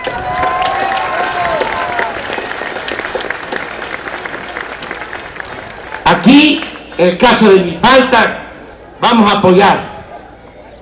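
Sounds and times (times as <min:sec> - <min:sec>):
audience applause: 0:00.0 - 0:07.0
speech: 0:06.2 - 0:08.4, 0:09.0 - 0:09.9.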